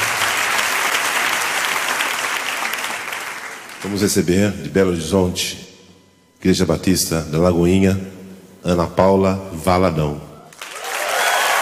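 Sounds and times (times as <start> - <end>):
audience applause: 0.0 - 4.1, 10.5 - 11.6
speech: 3.8 - 5.7, 6.4 - 10.3.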